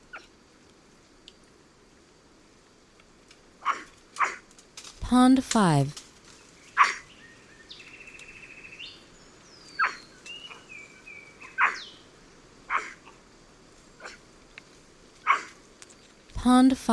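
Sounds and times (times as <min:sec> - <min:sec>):
white-throated capuchin barking: 0:03.6 - 0:04.4, 0:06.8 - 0:07.0, 0:09.8 - 0:10.0, 0:11.4 - 0:11.9, 0:12.7 - 0:13.2, 0:14.0 - 0:14.2, 0:15.3 - 0:15.6
speech: 0:05.1 - 0:06.0, 0:16.6 - 0:16.9.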